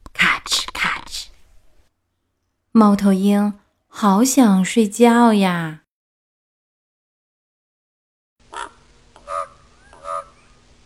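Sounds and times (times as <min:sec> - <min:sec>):
speech: 0:02.8 - 0:05.8
crow cawing: 0:08.5 - 0:10.6.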